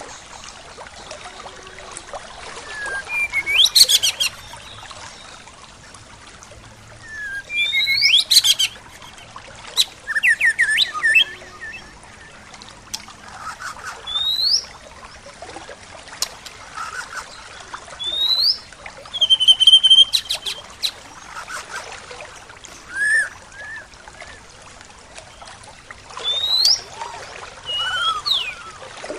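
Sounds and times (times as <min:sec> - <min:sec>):
soft trickling: 0:00.0 - 0:29.1
birds chirping and whistling: 0:02.6 - 0:04.8, 0:07.0 - 0:12.4, 0:13.4 - 0:14.7, 0:18.0 - 0:21.9, 0:22.7 - 0:24.4, 0:26.2 - 0:26.9, 0:27.6 - 0:29.1.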